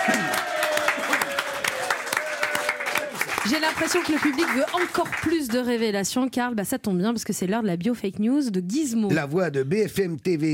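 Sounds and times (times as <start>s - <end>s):
audience applause: 0.0s - 5.6s
speech: 3.4s - 10.5s.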